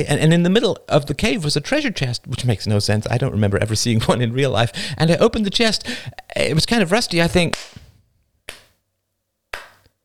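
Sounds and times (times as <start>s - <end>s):
speech: 0.0s - 7.8s
slow sarcastic hand claps: 7.5s - 7.9s, 8.5s - 8.7s, 9.5s - 9.9s.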